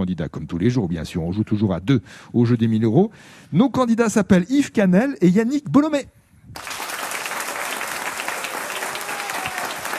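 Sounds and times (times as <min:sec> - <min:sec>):
speech: 0:00.1 - 0:06.7
masked studio audience applause at a quiz show: 0:06.6 - 0:09.9.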